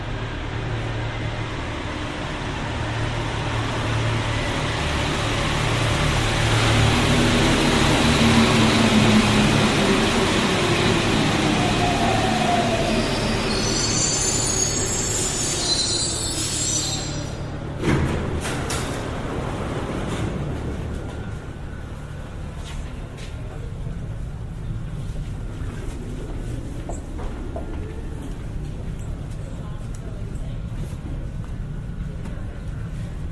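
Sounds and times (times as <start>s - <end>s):
Paris Métro train rumbling: 0.0s - 33.3s
high metallic squeal of Paris Métro train wheels: 12.9s - 17.6s.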